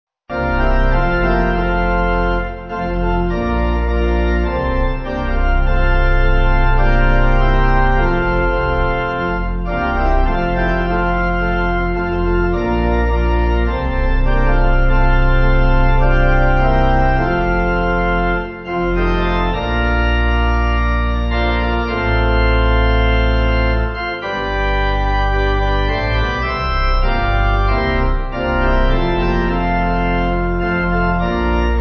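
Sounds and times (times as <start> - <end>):
church pipe organ backing music: 0.3 - 31.8.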